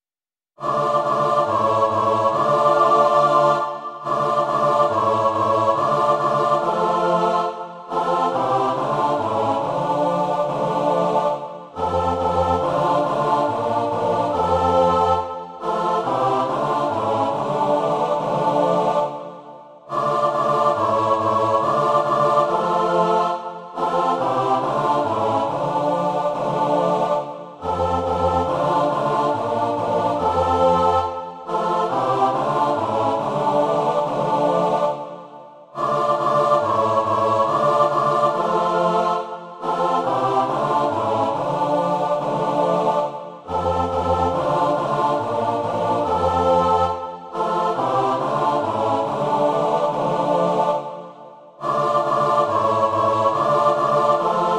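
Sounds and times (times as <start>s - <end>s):
choir singing: 0.6s - 54.5s.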